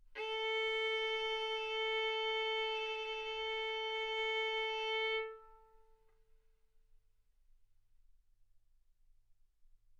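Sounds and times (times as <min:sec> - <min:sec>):
violin bowed arco notes: 0:00.1 - 0:05.9.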